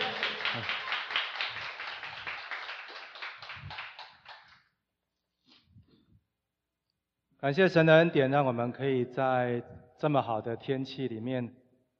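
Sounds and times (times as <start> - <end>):
warm applause: 0.0 - 4.7
speech: 0.6 - 0.8, 7.4 - 11.6.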